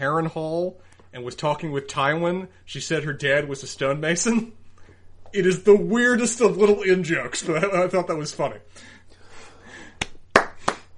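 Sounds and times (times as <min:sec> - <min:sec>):
speech: 0:00.0 - 0:04.6, 0:05.3 - 0:09.0
sharp hand claps: 0:10.0 - 0:10.9.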